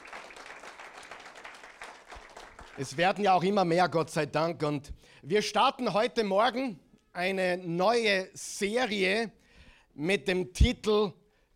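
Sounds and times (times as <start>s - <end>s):
audience applause: 0.0s - 2.9s
speech: 2.8s - 9.4s, 10.0s - 11.5s.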